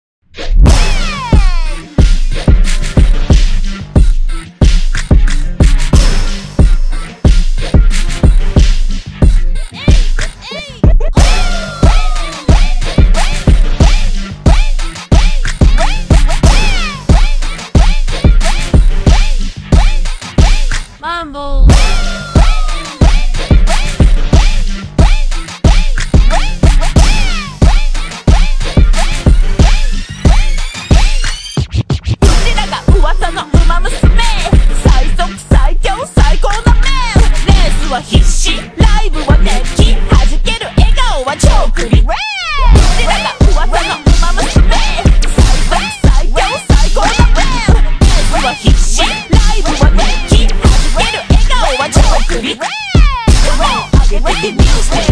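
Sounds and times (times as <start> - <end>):
slowed rap remix: 0.4 - 31.4, 32.2 - 55.1.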